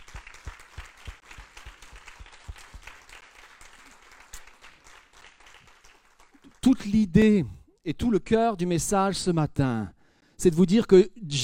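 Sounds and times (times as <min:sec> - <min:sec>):
audience applause: 0:00.0 - 0:06.6
speech: 0:06.7 - 0:11.4.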